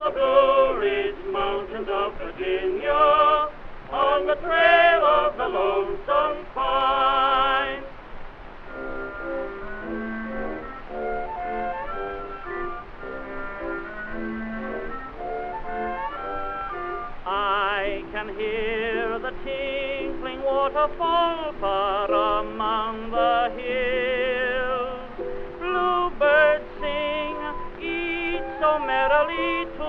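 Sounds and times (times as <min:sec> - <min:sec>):
tenor singing: 0:00.0 - 0:08.1, 0:08.7 - 0:29.8
orchestra playing: 0:08.7 - 0:17.4.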